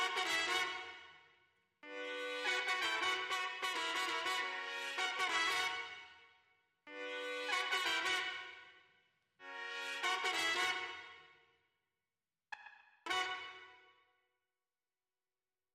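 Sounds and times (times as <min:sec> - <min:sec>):
clean trumpet: 0:00.0 - 0:01.2, 0:01.8 - 0:06.3, 0:06.9 - 0:08.8, 0:09.4 - 0:11.4, 0:13.1 - 0:13.9.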